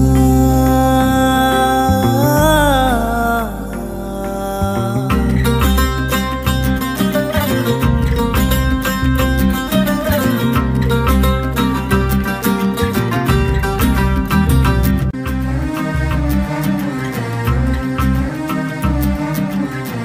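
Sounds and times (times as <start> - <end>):
Kannada love ringtone background music: 0.2 - 19.9.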